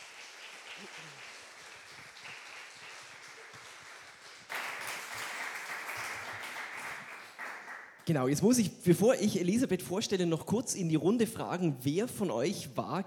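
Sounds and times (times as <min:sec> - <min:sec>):
audience applause: 0:00.0 - 0:08.0
speech: 0:08.1 - 0:13.0.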